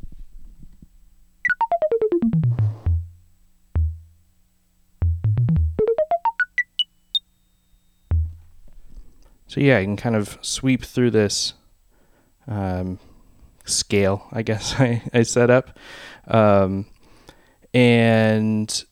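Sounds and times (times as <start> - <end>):
modular synthesizer notes through 281 envelope and 292 module: 1.5 - 3.2, 3.8 - 4.1, 5.0 - 6.9, 8.1 - 8.4
speech: 9.6 - 11.6, 12.5 - 13.1, 13.7 - 16.9, 17.7 - 18.9.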